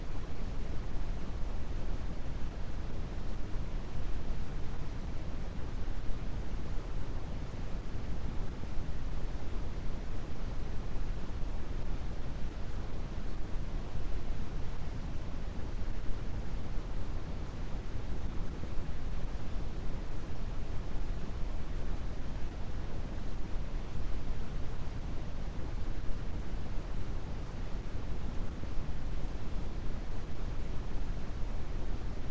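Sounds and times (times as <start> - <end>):
quiet brown noise: 0.0 - 32.2.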